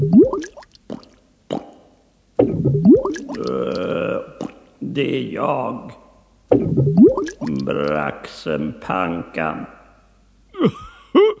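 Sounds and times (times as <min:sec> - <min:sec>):
large bubble rising from water: 0:00.0 - 0:01.6, 0:02.4 - 0:03.6, 0:06.5 - 0:07.7
speech: 0:05.0 - 0:06.0, 0:06.6 - 0:09.8.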